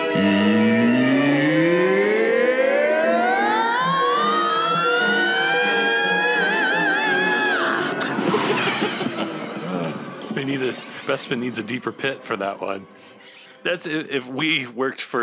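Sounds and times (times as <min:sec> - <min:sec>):
metal singer screaming: 0:00.2 - 0:08.0
laughter: 0:07.6 - 0:10.2
speech: 0:11.2 - 0:15.2.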